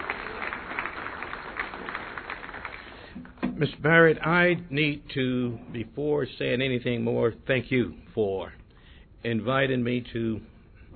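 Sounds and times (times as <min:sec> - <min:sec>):
applause: 0:00.0 - 0:03.2
speech: 0:03.6 - 0:08.6, 0:09.2 - 0:10.5.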